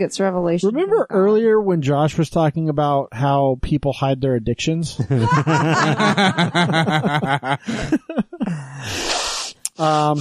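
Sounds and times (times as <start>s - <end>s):
speech: 0.0s - 10.1s
laughter: 5.0s - 8.9s
sniffing: 7.6s - 10.1s.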